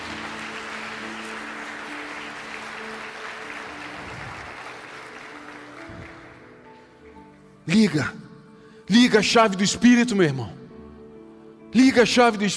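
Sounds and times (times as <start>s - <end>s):
audience applause: 0.0s - 6.7s
speech: 7.7s - 8.2s, 8.9s - 10.6s, 11.7s - 12.5s.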